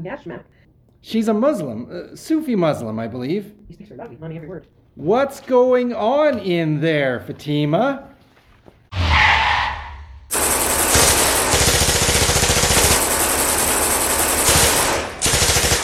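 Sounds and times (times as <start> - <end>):
speech: 0.0 - 8.1
brief rushing noise: 8.9 - 10.4
Tommy gun fire in a shootout from an alley: 10.3 - 15.8.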